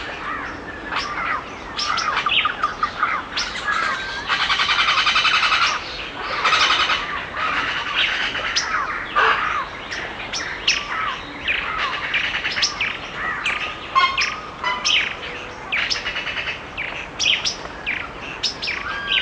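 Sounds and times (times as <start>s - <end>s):
woodland birds chirping: 0.0s - 19.2s.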